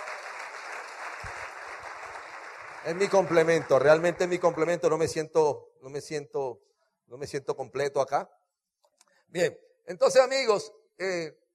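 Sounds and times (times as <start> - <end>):
audience applause: 0.0 - 4.8
speech: 2.8 - 6.4, 7.1 - 8.4, 9.3 - 11.4.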